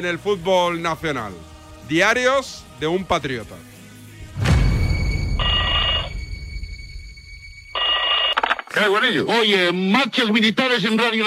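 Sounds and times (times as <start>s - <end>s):
speech: 0.0s - 3.7s, 8.7s - 11.2s
telephone ringing: 5.3s - 6.7s, 7.4s - 9.0s.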